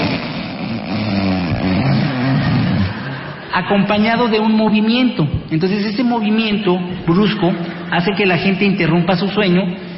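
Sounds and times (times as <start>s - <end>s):
loud snore at end of sleep apnea: 0.0s - 3.4s
speech: 3.6s - 9.8s.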